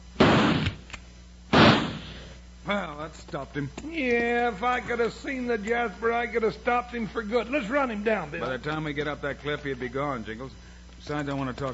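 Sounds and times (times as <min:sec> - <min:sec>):
rifle shots fired into bushes, radio drama effect: 0:00.2 - 0:00.9, 0:01.5 - 0:02.3
speech: 0:02.7 - 0:11.7.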